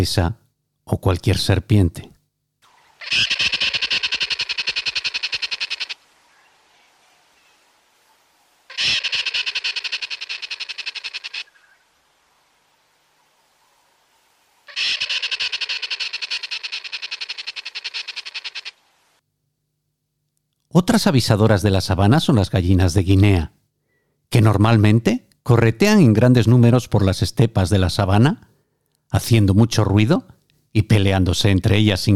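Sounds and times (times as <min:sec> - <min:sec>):
speech: 0:00.0 - 0:02.1, 0:20.9 - 0:23.6, 0:24.3 - 0:28.5, 0:29.1 - 0:32.1
squirrel alarm calls: 0:03.0 - 0:06.0, 0:08.7 - 0:11.6, 0:14.7 - 0:18.8.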